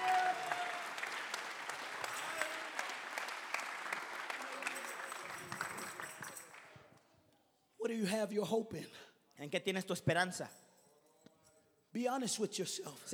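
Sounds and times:
audience clapping hands: 0:00.0 - 0:06.9
speech: 0:07.9 - 0:10.6, 0:12.0 - 0:13.1.

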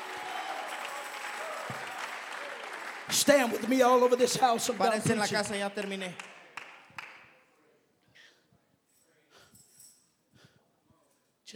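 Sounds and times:
audience clapping hands: 0:00.0 - 0:07.4
speech: 0:01.7 - 0:01.9, 0:03.1 - 0:06.3.

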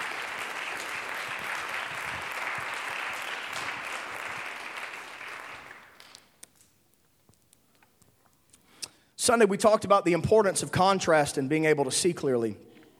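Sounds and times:
audience hand clapping: 0:00.0 - 0:06.7
speech: 0:09.3 - 0:12.7.

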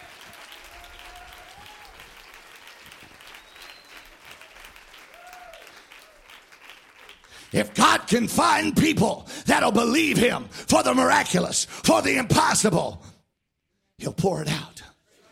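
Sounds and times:
audience clapping hands: 0:00.0 - 0:08.5
speech: 0:07.5 - 0:13.1, 0:14.0 - 0:14.7.

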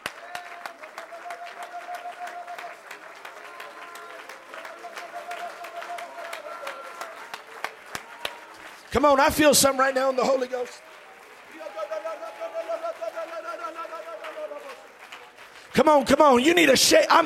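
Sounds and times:
audience clapping hands: 0:00.0 - 0:17.2
speech: 0:08.9 - 0:10.9, 0:15.8 - 0:17.2.

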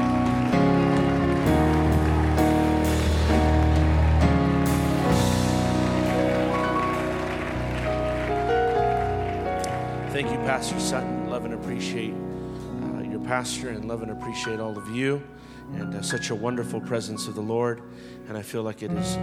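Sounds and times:
audience clapping hands: 0:00.0 - 0:11.8
instrumental music with held chords: 0:00.0 - 0:18.3
speech: 0:10.2 - 0:12.3, 0:13.3 - 0:19.2.

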